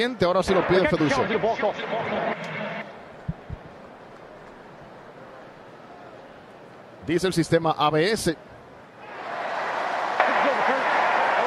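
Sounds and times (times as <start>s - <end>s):
speech: 0.0s - 2.7s, 7.1s - 8.5s
stadium crowd applause: 9.0s - 11.4s.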